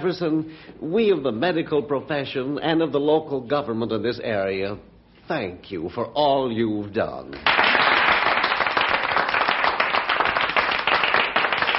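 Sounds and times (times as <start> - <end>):
speech: 0.0 - 7.8
audience applause: 7.4 - 11.7.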